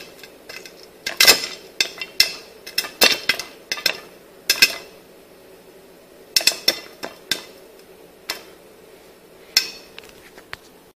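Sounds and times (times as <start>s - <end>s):
popcorn popping: 0.0s - 5.0s, 6.3s - 8.6s.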